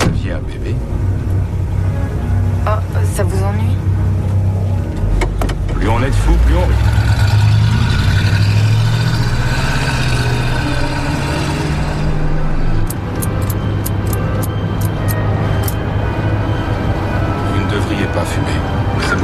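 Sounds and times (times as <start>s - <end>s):
car engine driving on a road: 0.0s - 19.2s
high clicks: 12.9s - 15.8s.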